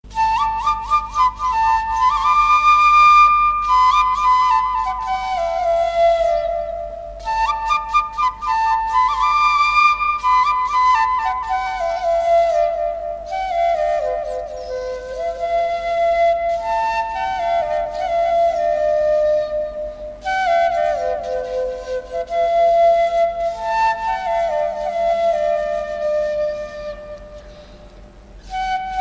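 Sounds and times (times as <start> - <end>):
Balochi music: 0.0 - 29.0.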